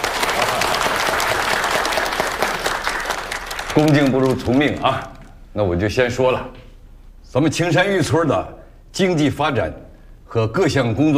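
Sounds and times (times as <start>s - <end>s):
audience applause: 0.0s - 5.1s
speech: 3.8s - 6.6s, 7.3s - 11.1s.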